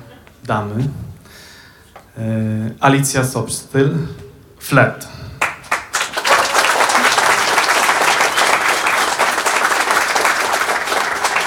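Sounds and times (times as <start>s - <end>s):
speech: 0.5s - 1.1s, 2.2s - 5.2s
audience applause: 5.4s - 11.4s.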